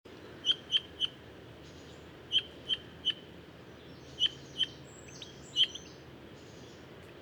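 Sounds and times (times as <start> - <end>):
Pyrrhula pyrrhula calling: 0.4 - 3.2, 4.0 - 6.6.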